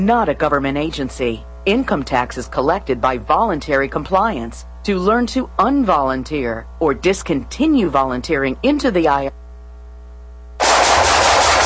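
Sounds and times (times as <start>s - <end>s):
speech: 0.0s - 9.4s
low tonal hum: 0.0s - 11.6s
automatic gunfire: 10.6s - 11.6s.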